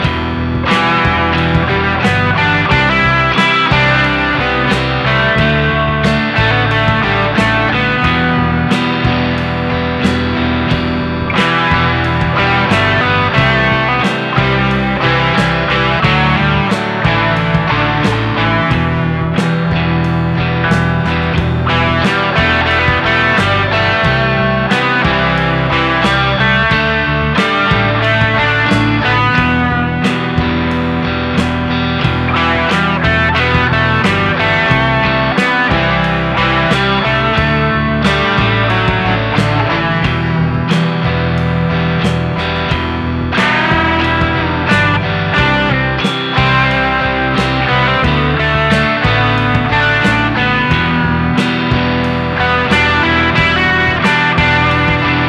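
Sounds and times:
guitar practice: 0:00.0 - 0:55.2.

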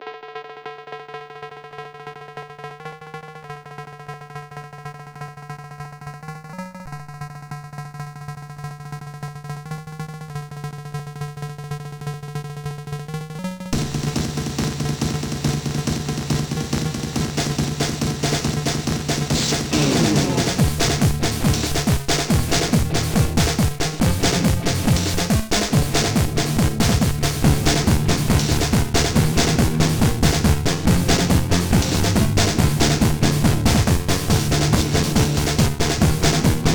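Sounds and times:
djent metal: 0:13.8 - 0:36.7.

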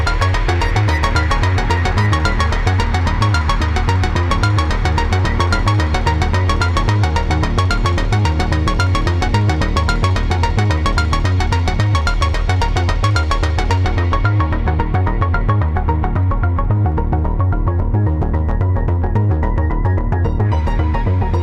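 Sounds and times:
dreamy post trance dark synthwave ambient hardware synthesizer jam: 0:00.0 - 0:21.4.

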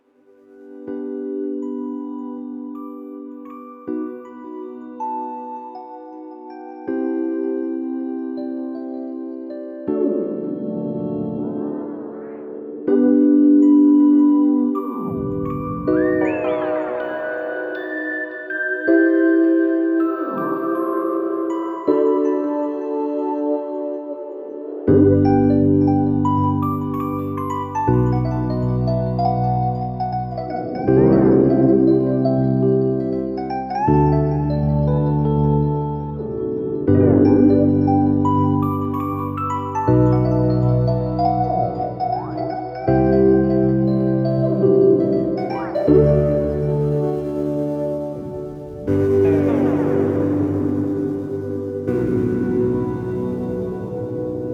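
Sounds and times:
electric piano: 0:00.6 - 0:54.5.

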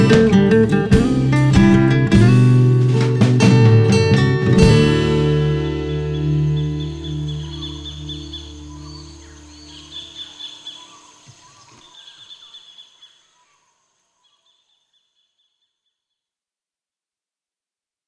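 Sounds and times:
morning guitar playing: 0:00.0 - 0:10.2.

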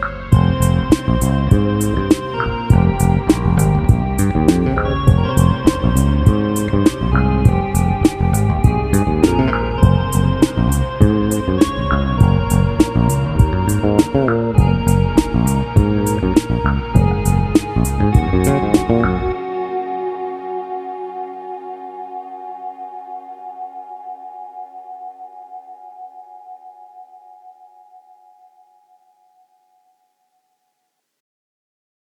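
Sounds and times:
fretless bass funk: 0:00.0 - 0:19.4.

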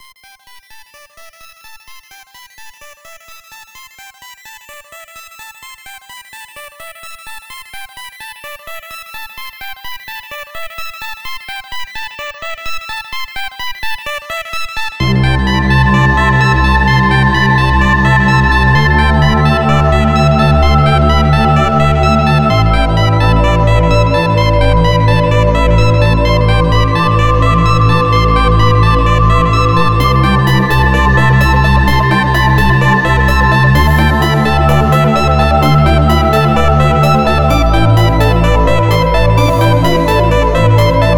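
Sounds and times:
ambient music sketch: 0:15.0 - 0:41.1.

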